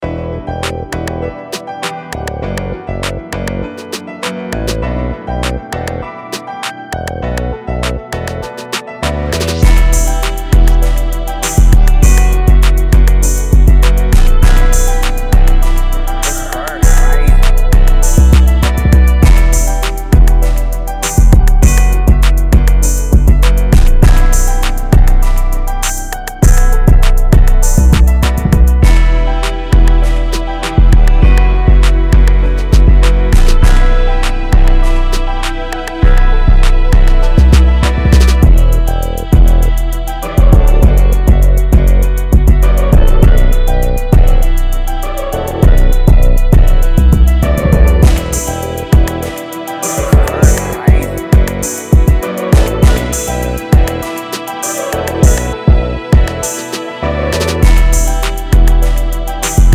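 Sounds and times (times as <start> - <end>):
pluggnb type beat in B minor: 0.6 - 4.8, 5.4 - 59.7.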